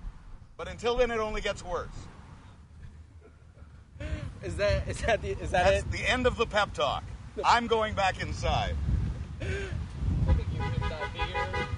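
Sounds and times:
low rumbling traffic-like background: 0.0s - 11.7s
speech: 0.6s - 2.2s, 4.4s - 9.8s
car horns beeping: 10.2s - 11.7s.

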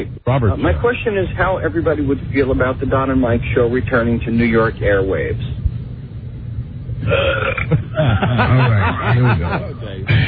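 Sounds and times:
speech: 0.0s - 5.7s, 7.0s - 10.2s
loud drawn-out belch: 7.0s - 8.2s
laughter: 7.7s - 10.2s.

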